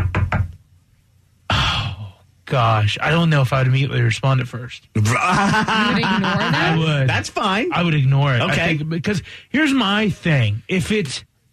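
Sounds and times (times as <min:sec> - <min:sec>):
knuckles knocking on a door: 0:00.0 - 0:00.6
speech: 0:02.5 - 0:11.3
laughter: 0:05.0 - 0:07.2.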